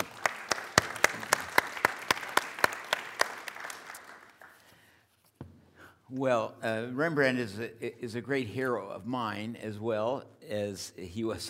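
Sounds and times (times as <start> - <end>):
audience round of applause: 0.0 - 4.6
speech: 6.1 - 11.4.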